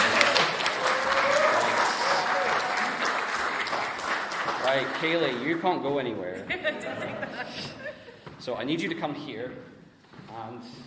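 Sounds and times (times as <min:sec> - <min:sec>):
applause: 0:00.0 - 0:05.7
speech: 0:04.8 - 0:10.8
laughter: 0:06.2 - 0:08.2.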